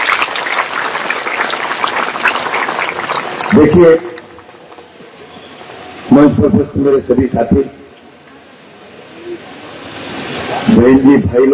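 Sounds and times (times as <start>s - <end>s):
audience applause: 0.0s - 5.8s
speech: 3.6s - 4.2s, 6.2s - 7.8s, 10.7s - 11.5s.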